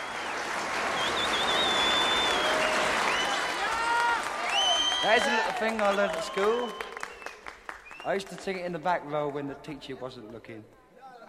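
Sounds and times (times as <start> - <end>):
faint whistles: 0.0 - 3.4, 4.5 - 5.3, 5.9 - 8.2
applause added to studio recording: 0.0 - 9.4
speech: 5.0 - 6.9, 8.0 - 11.2.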